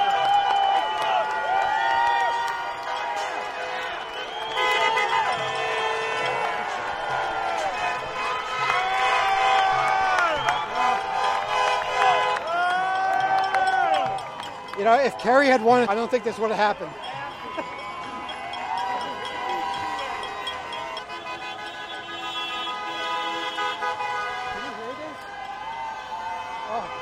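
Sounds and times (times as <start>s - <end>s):
crowd celebrating in the streets: 0.0s - 22.5s, 23.5s - 27.0s
crowd chatter: 2.5s - 27.0s
speech: 14.9s - 17.1s.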